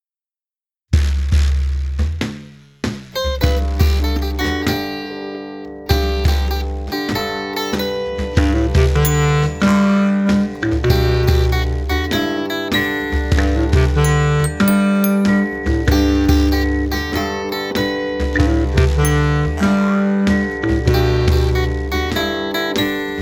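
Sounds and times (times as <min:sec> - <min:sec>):
instrumental music: 0:01.0 - 0:23.2.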